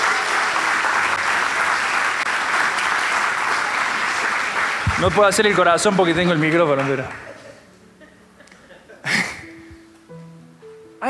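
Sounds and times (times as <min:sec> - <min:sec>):
audience applause: 0:00.0 - 0:07.6
laughter: 0:04.9 - 0:09.8
speech: 0:05.0 - 0:07.3.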